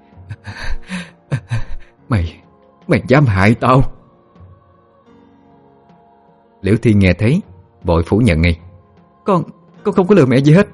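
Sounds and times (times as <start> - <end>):
person panting heavily: 0.3 - 2.0
speech: 2.9 - 4.0, 6.6 - 8.6, 9.3 - 10.7.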